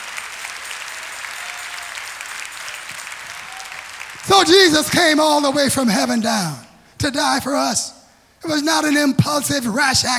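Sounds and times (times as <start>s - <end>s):
audience clapping hands: 0.0s - 5.6s
speech: 4.2s - 10.1s.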